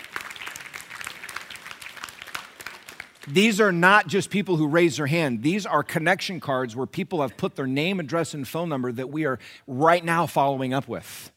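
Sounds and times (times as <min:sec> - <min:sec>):
audience applauding: 0:00.0 - 0:03.6
speech: 0:03.3 - 0:11.3.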